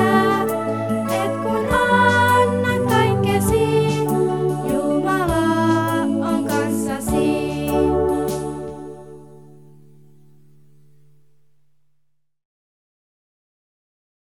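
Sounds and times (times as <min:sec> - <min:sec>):
Finnish song: 0:00.0 - 0:10.0.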